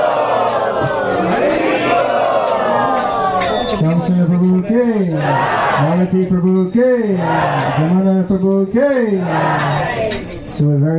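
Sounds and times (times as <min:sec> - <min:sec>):
crowd chanting loudly in welcome: 0:00.0 - 0:04.0, 0:04.9 - 0:06.1, 0:07.0 - 0:08.2, 0:08.8 - 0:10.2
speech: 0:06.1 - 0:10.9.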